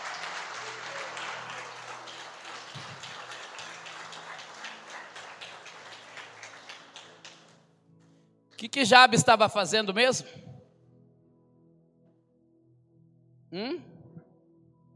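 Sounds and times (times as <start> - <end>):
applause: 0.0 - 7.6
speech: 8.6 - 10.4.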